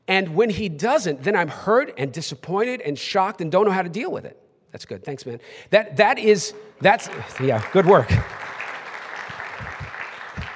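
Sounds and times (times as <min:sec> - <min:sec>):
speech: 0:00.1 - 0:08.5
weak applause: 0:06.8 - 0:10.5.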